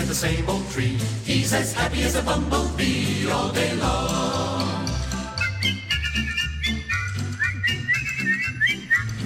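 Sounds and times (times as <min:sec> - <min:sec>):
speech: 0:00.1 - 0:04.6
person whistling a song melody: 0:05.2 - 0:09.2.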